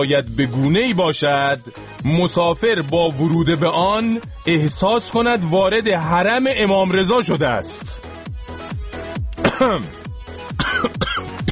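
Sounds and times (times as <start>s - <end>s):
speech: 0.0s - 8.2s, 9.6s - 10.0s
person coughing as if choking: 9.4s - 11.4s.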